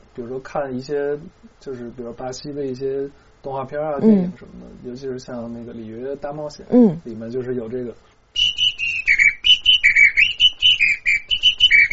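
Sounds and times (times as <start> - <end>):
speech: 0.2 - 8.1
bird whistle imitating birdsong: 8.4 - 11.9.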